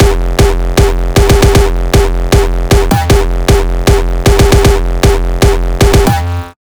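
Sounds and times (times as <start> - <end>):
kick drum loop at 155: 0.0 - 6.2.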